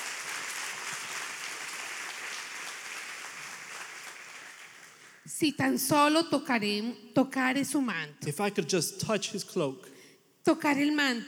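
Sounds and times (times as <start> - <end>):
crowd applauding: 0.0 - 5.3
speech: 5.2 - 11.2.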